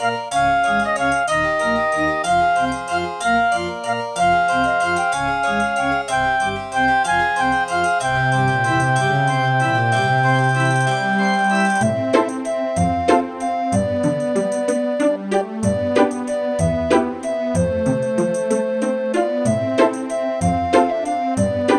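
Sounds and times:
Roland CM500 synthesizer music in GS mode: 0.0s - 21.7s.

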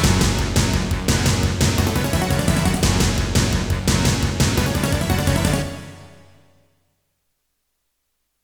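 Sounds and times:
Dreamblaster X16GS synthesizer music: 0.0s - 6.5s.

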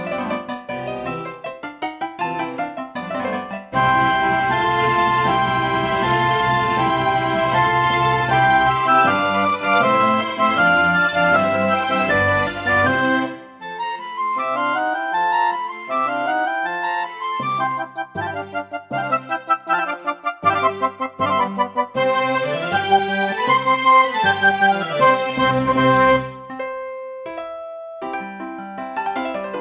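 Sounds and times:
classical music on a Roland SC-88 synthesizer module: 0.0s - 29.5s.

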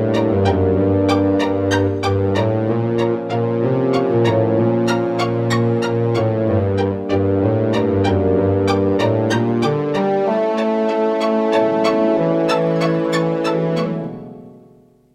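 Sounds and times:
Korg X5DR synthesizer module: 0.0s - 14.9s.

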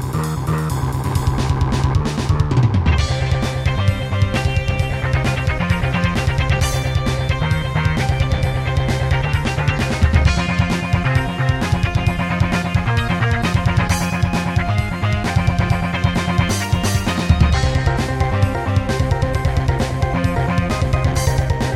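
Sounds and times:
Casio CTK-2100 electronic keyboard playing: 0.0s - 21.7s.

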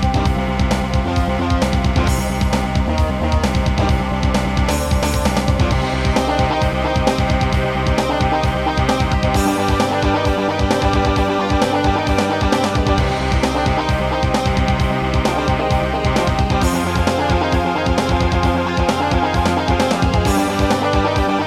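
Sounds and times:
Roland SD-90 sound module music in GM2 mode: 0.0s - 21.4s.

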